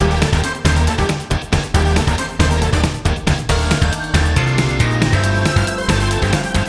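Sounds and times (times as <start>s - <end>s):
race music: 0.0s - 6.6s.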